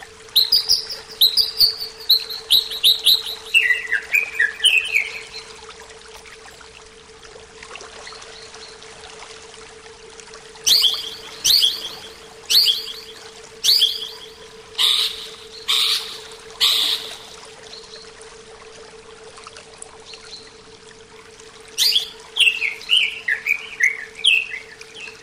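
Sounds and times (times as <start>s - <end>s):
greater green leafbird song: 0.4s - 5.5s, 10.7s - 18.1s, 21.8s - 25.2s.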